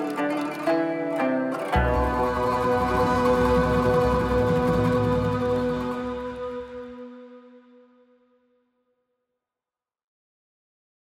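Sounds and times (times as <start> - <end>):
instrumental music: 0.0 - 8.3.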